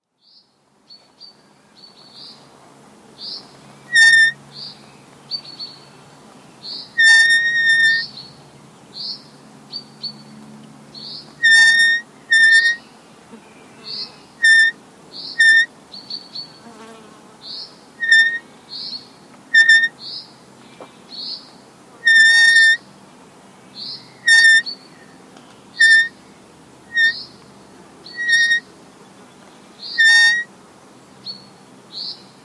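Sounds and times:
gate squeaking in the breeze: 3.9s - 4.4s, 7.0s - 8.1s, 11.4s - 12.8s, 14.4s - 14.8s, 15.4s - 15.7s, 18.0s - 18.4s, 19.6s - 20.0s, 22.0s - 22.8s, 24.3s - 24.7s, 25.8s - 26.1s, 26.9s - 27.2s, 28.1s - 28.7s, 30.0s - 30.5s.

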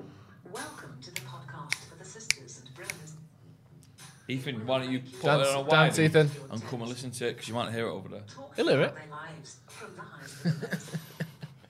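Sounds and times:
finger snaps in a podcast intro jingle: 1.2s - 3.1s
speech: 4.3s - 11.1s
laughter: 10.2s - 11.6s.

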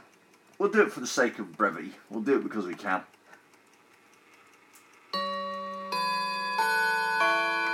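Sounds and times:
speech: 0.6s - 3.2s
clock playing a chime of bell-like notes: 5.1s - 7.7s.

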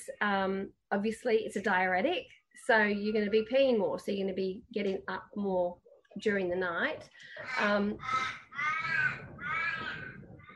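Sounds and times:
speech: 0.0s - 9.2s
birds cawing: 7.4s - 10.5s.

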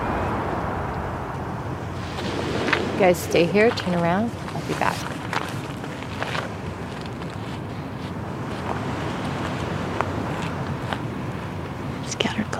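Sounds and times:
breezy wind: 0.0s - 12.5s
gentle waves of a bay lapping against a shore: 2.0s - 12.0s
speech: 3.0s - 5.2s.

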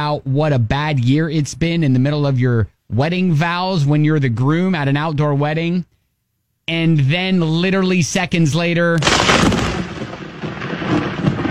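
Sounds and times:
speech: 0.0s - 5.9s, 6.7s - 9.6s
thunder from a lightning strike at an outdoor wedding: 9.0s - 11.5s.

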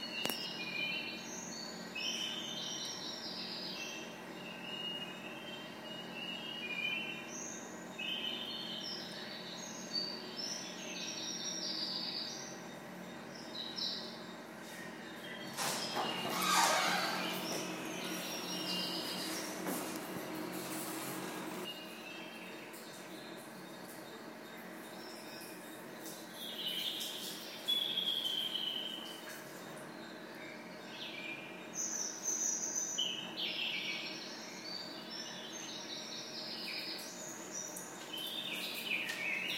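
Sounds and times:
toilet birdsong: 0.0s - 39.5s.

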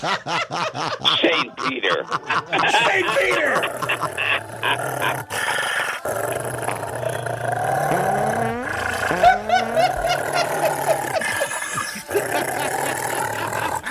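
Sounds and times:
laughter: 0.0s - 5.6s, 8.9s - 13.9s
speech: 0.0s - 5.7s
dog barking and growling: 3.6s - 13.9s.

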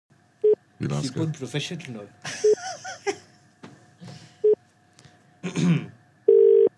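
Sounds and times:
speech: 0.8s - 3.2s, 5.4s - 6.0s
telephone ringing: 6.3s - 6.7s.

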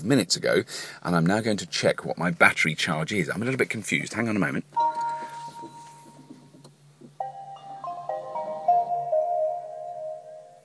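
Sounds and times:
speech: 0.0s - 4.9s
Nissan Leaf electric car startup chimes: 4.8s - 6.3s, 7.2s - 10.6s.

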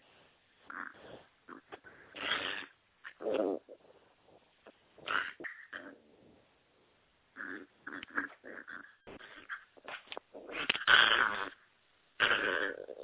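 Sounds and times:
excited puppy grunting and snorting: 0.7s - 4.0s, 5.0s - 6.4s, 7.3s - 13.0s.

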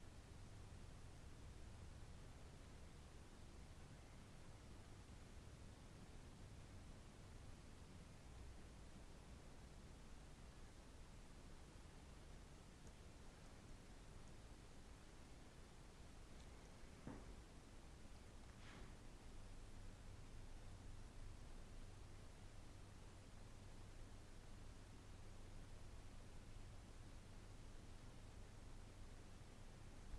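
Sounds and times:
multi faith prayer room ambience at Heathrow Terminal 4: 0.0s - 30.1s.

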